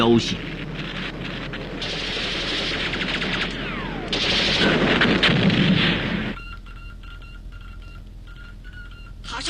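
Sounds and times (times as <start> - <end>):
speech: 0.0 - 0.6
booming artillery blasts: 0.0 - 6.4
low rumble: 0.0 - 6.4
descending aircraft whine: 0.0 - 9.2
rapid bursts of gunfire in a battle: 0.4 - 6.4.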